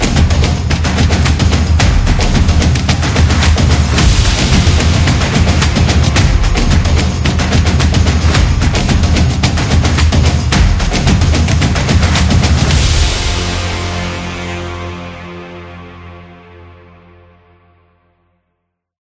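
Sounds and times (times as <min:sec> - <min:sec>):
stadium drums: 0:00.0 - 0:14.4.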